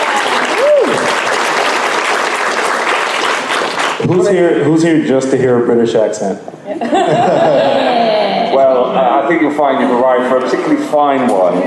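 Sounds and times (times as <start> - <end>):
audience applause: 0.0 - 4.2
speech: 4.1 - 11.6
laughter: 6.7 - 8.9.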